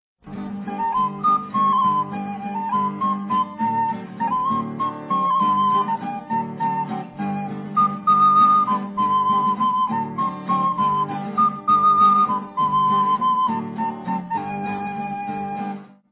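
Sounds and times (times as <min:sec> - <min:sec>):
instrumental folk song: 0:00.2 - 0:16.1.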